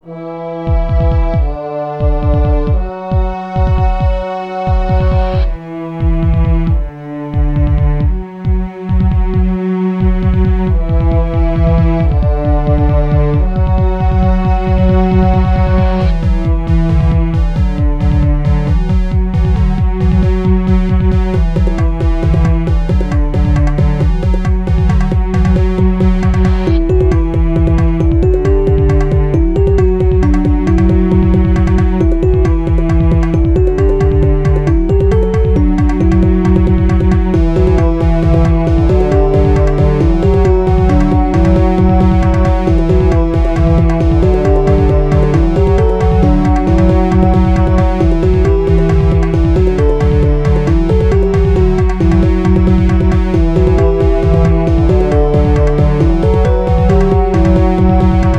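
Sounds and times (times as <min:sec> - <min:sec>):
electronica music: 0:00.0 - 0:58.3.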